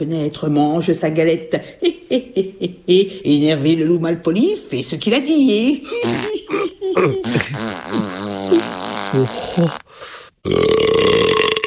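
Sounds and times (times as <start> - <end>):
speech: 0.0 - 6.4, 7.0 - 8.2, 9.1 - 11.2
voice imitating burping and farting: 6.0 - 11.6.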